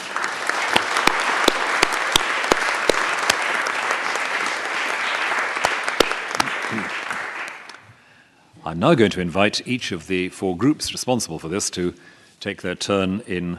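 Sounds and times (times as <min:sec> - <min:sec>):
audience applause: 0:00.0 - 0:07.8
speech: 0:08.7 - 0:13.5.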